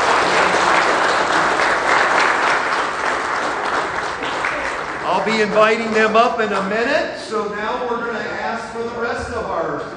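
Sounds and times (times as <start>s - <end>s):
audience applauding in celebration: 0.0s - 6.7s
speech: 5.2s - 9.9s.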